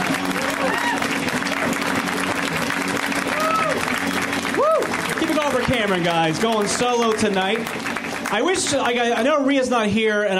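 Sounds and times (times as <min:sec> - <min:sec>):
audience cheer: 0:00.0 - 0:06.7
audience applause for a comedian at a comedy show: 0:00.0 - 0:09.5
speech: 0:05.8 - 0:10.3.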